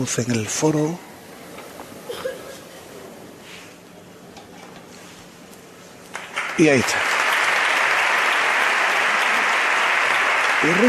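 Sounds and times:
speech: 0:00.0 - 0:01.1, 0:06.6 - 0:07.1, 0:10.6 - 0:10.8
large crowd applauding in a strong ovation: 0:06.1 - 0:10.8.

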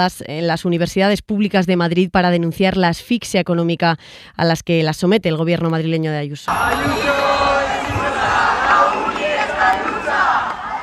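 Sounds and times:
speech: 0:00.0 - 0:07.2
hundreds of protesters chanting: 0:06.5 - 0:10.8.

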